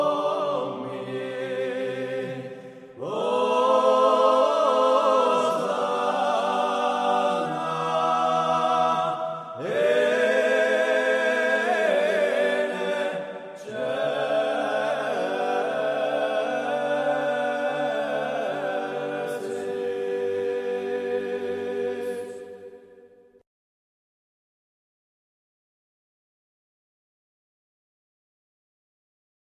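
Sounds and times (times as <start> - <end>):
Corsican polyphonic sanctus singing: 0.0 - 23.2.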